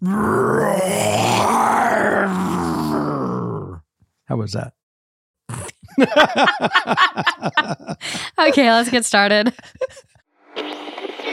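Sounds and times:
speech: 0.0 - 1.0, 4.4 - 4.8, 6.0 - 10.0
person imitating the MGM lion roar: 0.0 - 3.8
laughter: 5.7 - 10.2.

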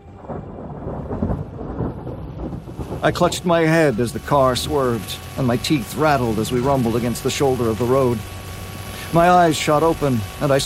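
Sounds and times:
thunder rumbling: 0.0 - 6.0
faint hiss of rain: 0.0 - 10.6
speech: 3.0 - 8.4, 9.1 - 10.6.

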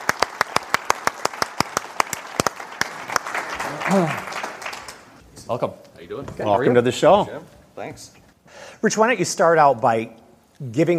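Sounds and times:
audience applause: 0.0 - 5.2
speech: 3.9 - 4.3, 5.5 - 8.2, 8.8 - 10.9.

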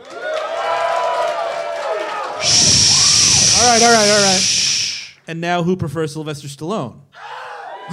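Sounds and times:
small audience cheering and whooping: 0.1 - 4.4, 7.2 - 7.9
speech: 3.6 - 4.6, 5.3 - 7.1.

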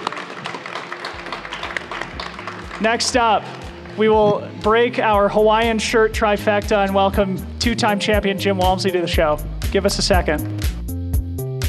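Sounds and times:
audience applause: 0.0 - 4.2
speech: 2.8 - 10.6.

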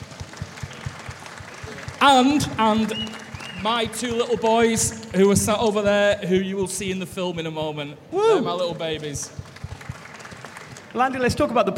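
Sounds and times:
audience clapping at a film screening event: 0.0 - 6.2, 8.5 - 11.4
soft rhythmic thumps: 0.0 - 11.4
speech: 2.0 - 9.5, 10.9 - 11.7.

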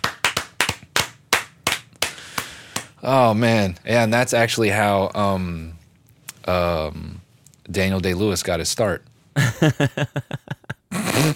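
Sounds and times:
slow hand clapping: 0.0 - 3.0
speech: 3.0 - 5.8, 6.4 - 10.6.

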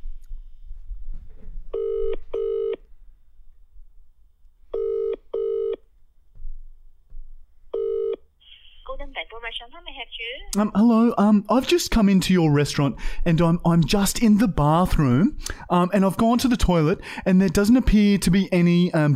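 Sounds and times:
telephone ringing tone in buzzy double bursts: 1.8 - 2.8, 4.8 - 5.8, 7.8 - 8.2
speech: 9.4 - 19.1.

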